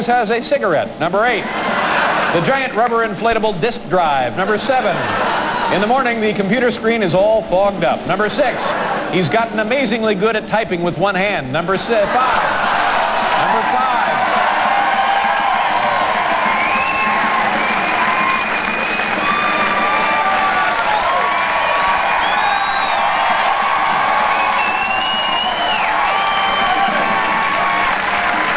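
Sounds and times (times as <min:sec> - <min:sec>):
speech: 0:00.0 - 0:12.6, 0:13.6 - 0:14.0
audience cheering and whooping: 0:01.4 - 0:02.8, 0:04.8 - 0:05.9, 0:11.9 - 0:28.5.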